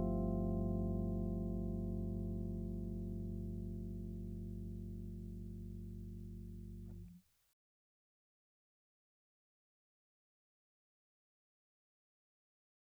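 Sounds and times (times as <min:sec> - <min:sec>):
Rhodes electric piano with EQ: 0:00.0 - 0:07.1.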